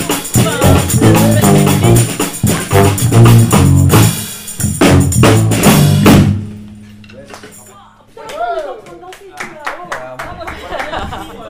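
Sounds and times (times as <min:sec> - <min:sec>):
brass band playing bass part: 0:00.0 - 0:06.9
laughter: 0:00.4 - 0:02.1, 0:08.1 - 0:11.4.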